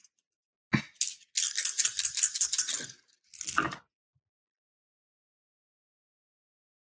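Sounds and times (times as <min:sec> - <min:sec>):
dice rattling for a tabletop role-playing game roll: 0:01.0 - 0:03.7.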